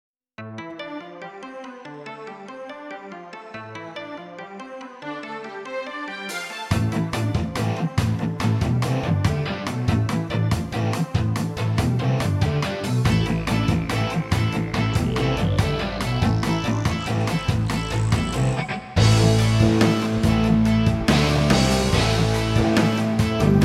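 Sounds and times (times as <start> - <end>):
rock music: 6.3 - 23.6.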